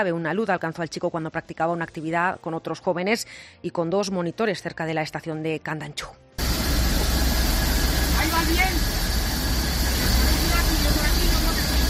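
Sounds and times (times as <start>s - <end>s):
speech: 0.0s - 6.2s, 8.2s - 9.0s
rescue helicopter engine: 6.4s - 11.8s.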